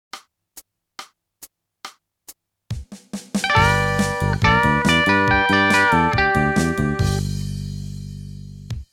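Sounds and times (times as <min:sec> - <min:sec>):
country music: 0:03.4 - 0:07.4.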